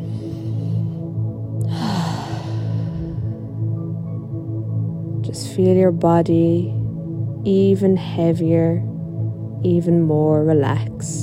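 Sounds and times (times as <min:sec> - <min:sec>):
slow deep breath during a guided relaxation exercise: 0:00.0 - 0:03.7
soft sustained music tones: 0:00.0 - 0:11.2
speech: 0:05.6 - 0:06.8, 0:07.4 - 0:08.9, 0:09.6 - 0:11.2.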